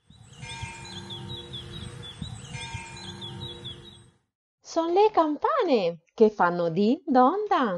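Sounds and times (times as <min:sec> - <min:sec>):
small birds chirping: 0:00.0 - 0:04.1
speech: 0:04.7 - 0:07.7.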